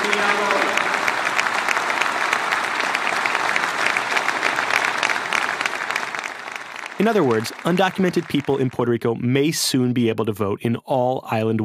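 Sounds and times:
crowd cheering: 0.0s - 9.0s
speech: 7.0s - 11.6s.

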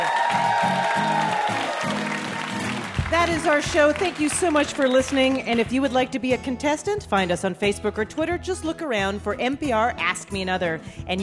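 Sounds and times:
audience applause: 0.0s - 5.6s
speech: 3.3s - 11.2s.

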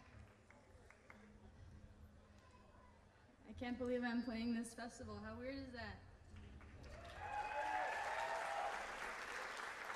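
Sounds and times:
speech: 3.5s - 6.1s
large audience clapping: 6.8s - 9.9s
cheers and whistles: 7.0s - 9.0s.

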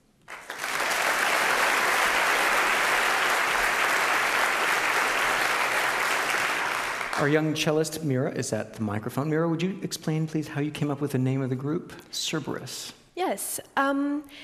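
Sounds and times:
audience applause welcoming a trio: 0.3s - 7.7s
speech: 7.2s - 14.4s.

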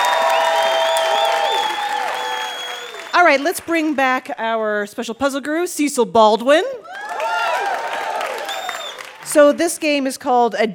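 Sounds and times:
audience applause: 0.0s - 3.7s, 6.9s - 9.3s
speech: 3.3s - 7.0s, 9.3s - 10.7s.

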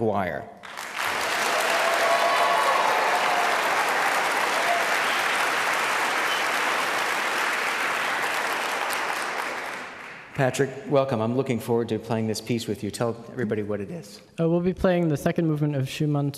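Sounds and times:
speech: 0.0s - 0.8s, 10.4s - 16.3s
audience applause welcoming a 17-year-old cellist from Westford, Massachusetts: 0.6s - 10.6s.

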